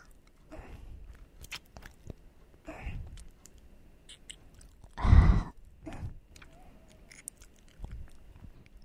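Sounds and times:
ear licking ASMR: 1.1 - 5.0, 6.2 - 8.8.

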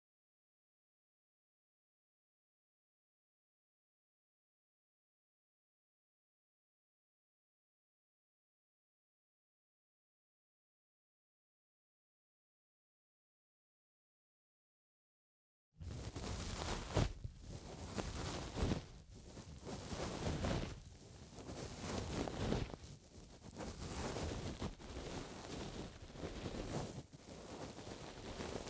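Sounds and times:
ear cleaning in the left ear: 16.0 - 28.6.

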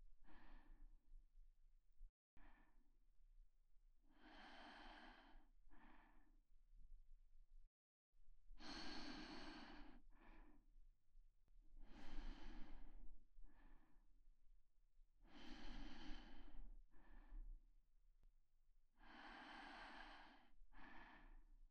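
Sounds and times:
person breathing in sleep: 0.2 - 0.9, 4.1 - 6.4, 8.6 - 10.7, 11.8 - 14.0, 15.2 - 17.5, 19.0 - 21.5.

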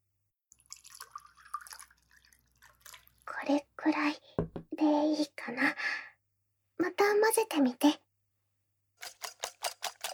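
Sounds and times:
milk poured little by little into crepe batter: 0.5 - 3.3
speech: 3.4 - 6.0, 6.9 - 8.0.

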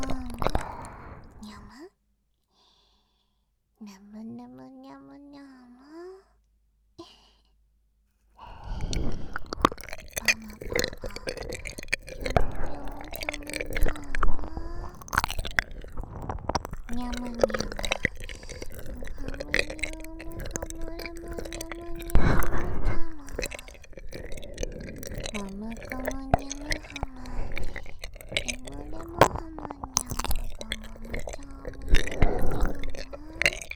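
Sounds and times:
ear licking sounds: 0.0 - 1.7, 8.4 - 33.7.

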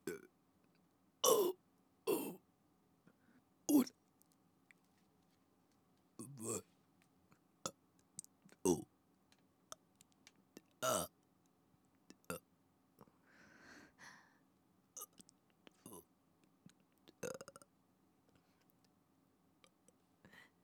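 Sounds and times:
burping: 0.1 - 0.3, 1.2 - 2.4, 6.2 - 6.6, 10.8 - 11.1, 17.2 - 17.7.

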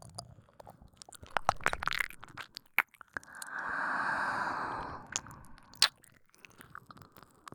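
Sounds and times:
nipple licking: 1.2 - 6.8
oral sucking sounds: 3.2 - 5.9
ear licking: 3.2 - 6.0.

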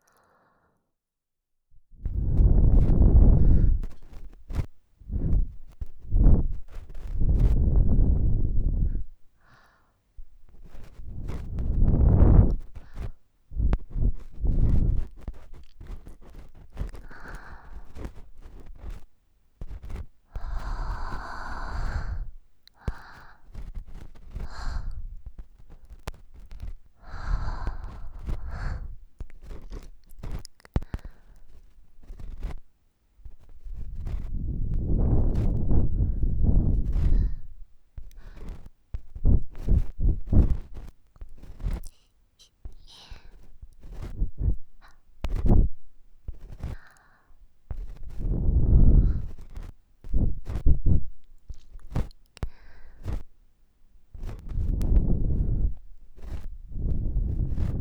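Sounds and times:
ear blowing left and right: 2.0 - 9.2, 10.2 - 19.0, 19.8 - 25.7, 26.4 - 31.3, 33.4 - 40.8, 42.8 - 46.9, 47.7 - 51.2, 54.3 - 57.7
ear cleaning sounds: 2.1 - 9.2, 10.2 - 53.3, 54.1 - 57.7.

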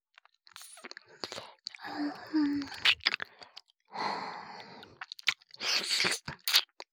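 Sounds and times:
ear licking sounds: 0.5 - 3.7, 4.8 - 6.9.

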